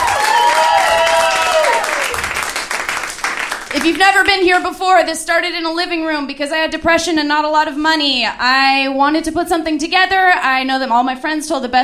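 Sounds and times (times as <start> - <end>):
cheering and whoops: 0.0 - 2.3
crowd clapping: 0.0 - 4.4
speech: 3.8 - 11.8.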